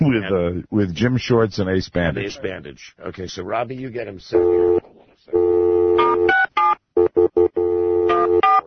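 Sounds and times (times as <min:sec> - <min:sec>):
speech: 0:00.0 - 0:06.3
long steady phone tone: 0:05.4 - 0:06.4, 0:07.0 - 0:08.5.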